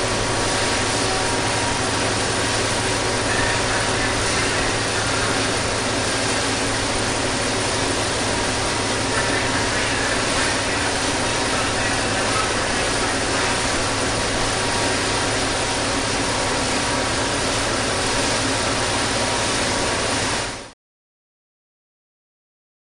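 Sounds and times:
diesel train idling: 0.0s - 20.3s.

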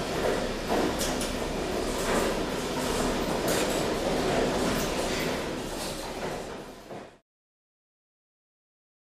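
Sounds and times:
plastic factory industrial machinery: 0.0s - 7.2s.

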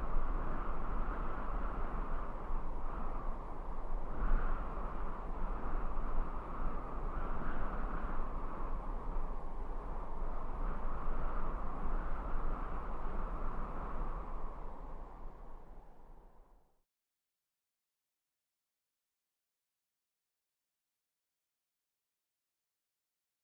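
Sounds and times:
medium sandy desert wind gusts: 0.0s - 16.7s.

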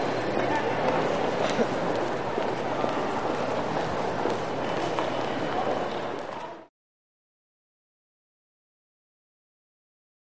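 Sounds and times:
huge marble interior lobby ambience: 0.0s - 6.7s.

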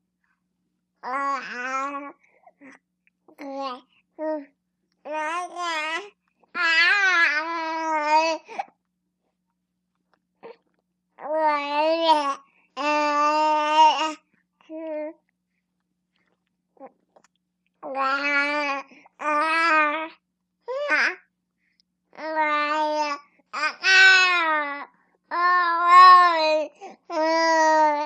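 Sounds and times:
four-month-old baby girl babbling indoors: 1.0s - 4.5s, 5.1s - 8.6s, 11.2s - 15.2s, 17.8s - 21.3s, 22.2s - 28.0s.

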